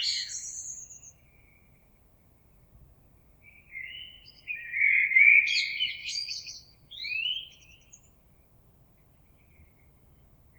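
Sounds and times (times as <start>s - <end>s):
common blackbird singing fluty phrases: 0.0s - 1.2s, 3.5s - 8.0s.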